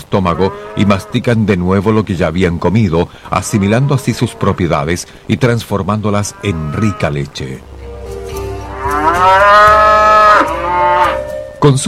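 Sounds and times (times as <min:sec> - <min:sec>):
speech: 0:00.1 - 0:07.7, 0:11.6 - 0:11.8
cow mooing: 0:00.2 - 0:01.4, 0:03.3 - 0:04.8, 0:06.1 - 0:07.3, 0:08.6 - 0:11.4.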